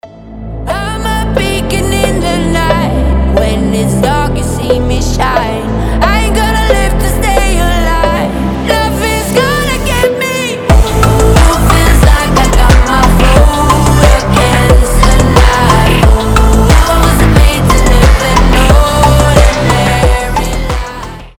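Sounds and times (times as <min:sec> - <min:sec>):
phonk remix: 0:00.7 - 0:21.3.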